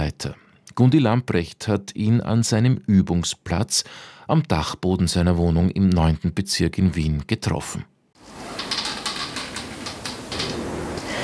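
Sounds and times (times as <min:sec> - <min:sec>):
speech: 0:00.2 - 0:07.9
wooden floorboards creaking underfoot in an attic: 0:08.3 - 0:11.2.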